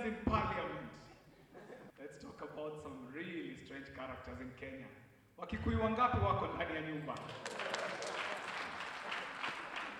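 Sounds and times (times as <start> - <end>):
speech: 0.0 - 0.6, 2.1 - 7.8
audience applause: 7.2 - 9.9.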